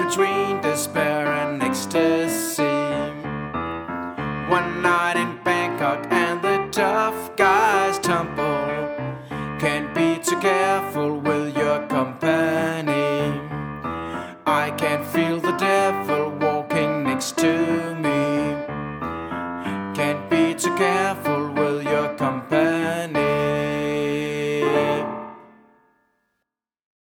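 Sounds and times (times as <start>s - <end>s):
soprano singing: 0.0s - 3.5s, 4.2s - 19.1s, 19.7s - 25.6s.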